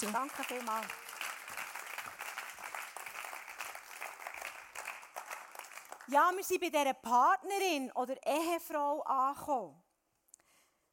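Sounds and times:
speech: 0.0s - 1.2s, 6.1s - 9.8s
audience applause: 0.0s - 6.1s.

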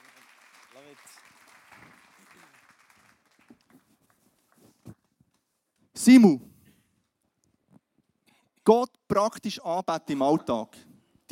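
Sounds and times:
audience applause: 0.0s - 4.6s
speech: 0.8s - 2.6s, 6.0s - 6.5s, 8.7s - 10.9s.

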